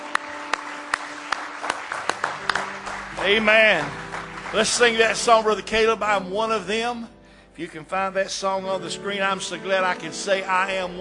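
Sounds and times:
audience hand clapping: 0.0s - 6.0s
speech: 3.2s - 11.0s.

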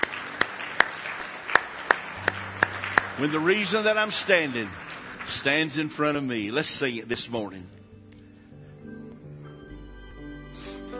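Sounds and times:
church congregation clapping hands in praise during a morning service: 0.0s - 7.5s
speech: 3.2s - 7.8s.

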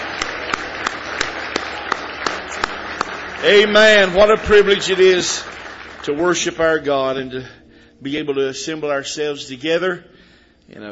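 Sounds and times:
audience clapping: 0.0s - 7.2s
speech: 3.4s - 10.1s, 10.7s - 10.8s.

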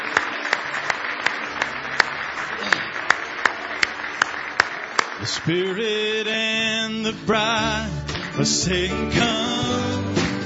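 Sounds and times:
audience hand clapping: 0.0s - 6.6s, 8.1s - 8.7s
speech: 5.2s - 10.1s.

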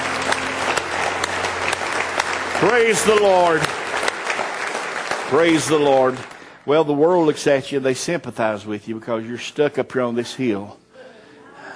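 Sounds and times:
church congregation clapping in praise during a sermon: 0.0s - 7.0s
speech: 2.6s - 3.7s, 5.3s - 10.8s.

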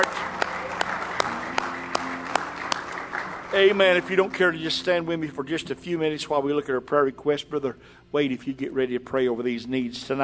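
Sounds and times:
audience clapping hands in praise: 0.0s - 5.0s
speech: 3.5s - 10.2s.

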